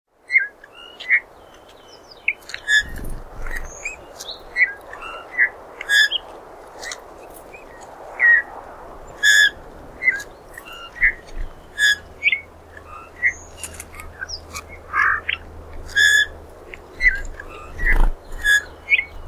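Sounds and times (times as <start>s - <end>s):
Pyrrhula pyrrhula calling: 2.3s - 6.2s, 9.2s - 16.4s, 17.0s - 19.2s.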